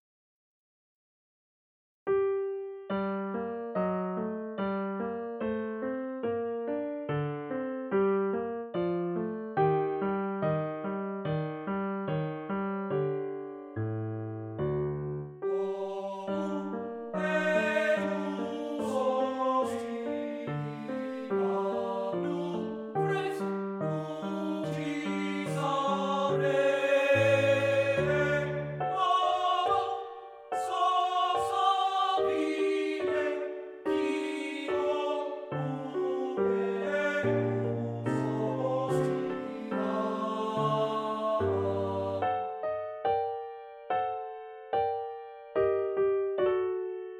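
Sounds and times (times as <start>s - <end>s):
art song for voice and piano: 2.1s - 47.1s.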